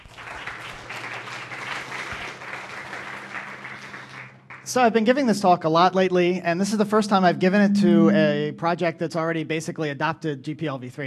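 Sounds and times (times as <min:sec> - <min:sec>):
crowd applauding: 0:00.0 - 0:05.8
faint low hum: 0:01.0 - 0:11.0
speech: 0:04.7 - 0:11.0.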